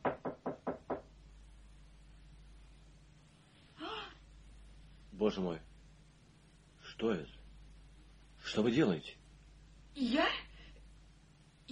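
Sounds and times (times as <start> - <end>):
soft knocks on a door: 0.0 - 1.1
speech: 5.2 - 5.7, 7.0 - 7.4, 8.5 - 9.2, 10.0 - 10.4.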